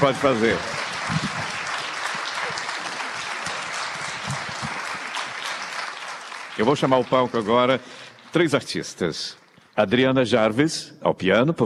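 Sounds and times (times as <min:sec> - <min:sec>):
speech: 0:00.0 - 0:01.2, 0:06.6 - 0:11.6
audience applause: 0:00.0 - 0:08.8.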